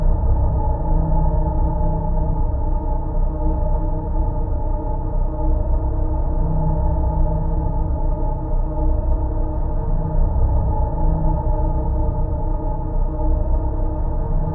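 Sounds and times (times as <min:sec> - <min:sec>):
drone: 0:00.0 - 0:14.5.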